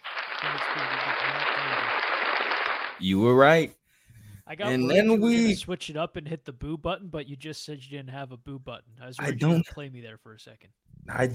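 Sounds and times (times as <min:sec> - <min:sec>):
applause: 0:00.0 - 0:03.0
speech: 0:00.5 - 0:02.0, 0:03.0 - 0:03.8, 0:04.5 - 0:11.3.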